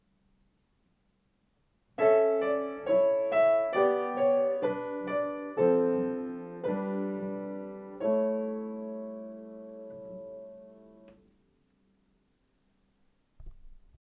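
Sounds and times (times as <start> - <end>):
piano soundtrack music: 2.0 - 11.2.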